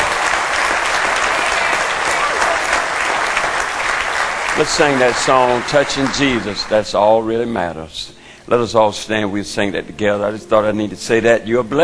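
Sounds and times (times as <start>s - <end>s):
audience applause: 0.0s - 7.2s
speech: 4.6s - 11.8s.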